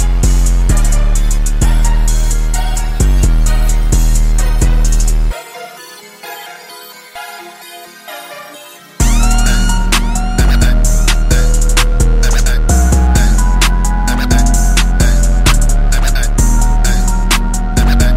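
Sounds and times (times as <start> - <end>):
808 drum machine instrumental: 0.0 - 5.4, 9.0 - 18.1.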